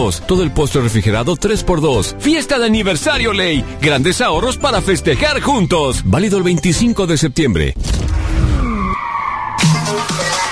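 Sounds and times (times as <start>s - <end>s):
speech: 0.0s - 8.2s
tire squeals from off-road racing vehicles skidding: 8.2s - 10.4s.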